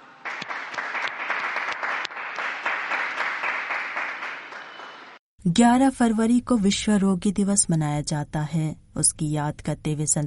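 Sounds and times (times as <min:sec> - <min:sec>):
crowd applauding: 0:00.2 - 0:05.2
speech: 0:05.4 - 0:10.2.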